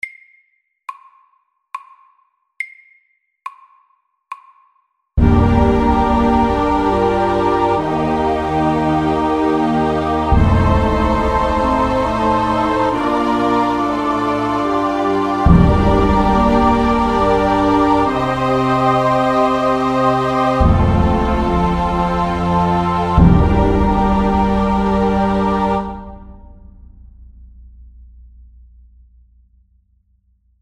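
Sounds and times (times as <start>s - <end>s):
slow music: 5.2s - 27.0s.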